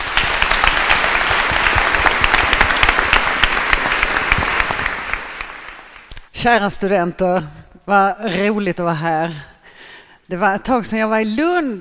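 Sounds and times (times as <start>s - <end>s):
warm applause from audience: 0.0s - 6.1s
speech: 6.4s - 9.5s, 10.3s - 11.7s.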